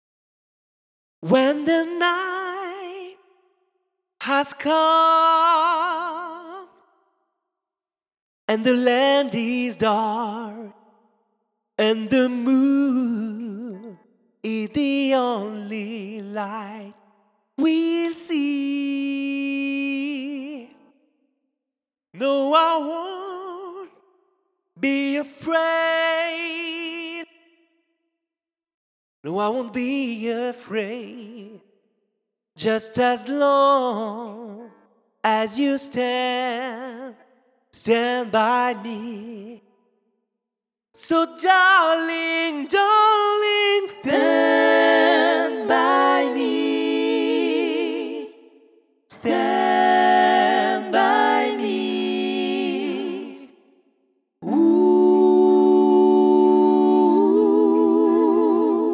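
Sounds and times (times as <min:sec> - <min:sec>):
a cappella gospel singing: 0:01.2 - 0:03.3, 0:04.2 - 0:06.8, 0:08.5 - 0:10.8, 0:11.8 - 0:17.0, 0:17.6 - 0:20.9, 0:22.2 - 0:24.0, 0:24.8 - 0:27.3, 0:29.3 - 0:31.6, 0:32.6 - 0:37.2, 0:37.8 - 0:39.6, 0:41.0 - 0:53.7, 0:54.4 - 0:58.9.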